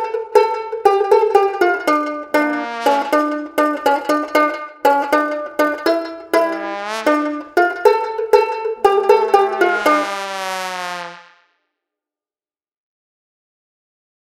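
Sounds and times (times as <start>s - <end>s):
ukulele: 0.0s - 10.1s
trombone: 2.2s - 4.2s, 5.8s - 11.3s.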